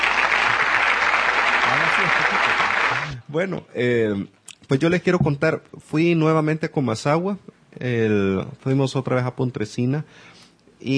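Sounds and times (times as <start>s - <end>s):
recorded studio applause effect: 0.0s - 3.2s
speech: 3.3s - 10.9s.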